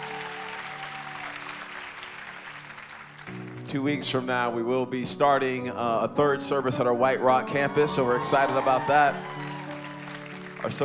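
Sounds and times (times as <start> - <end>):
audience applause: 0.0 - 3.7, 7.8 - 10.8
speech: 3.3 - 9.5, 10.6 - 10.8.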